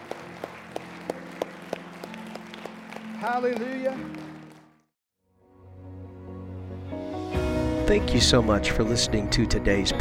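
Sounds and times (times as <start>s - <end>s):
audience clapping: 0.0s - 4.9s
speech: 3.2s - 4.2s, 7.9s - 9.9s.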